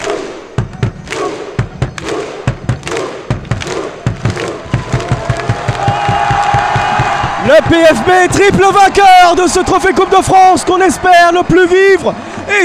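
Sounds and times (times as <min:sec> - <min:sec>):
crowd clapping and cheering a Coupe de France trophy win at Paris-Bercy: 0:00.0 - 0:12.6
speech: 0:07.6 - 0:12.6.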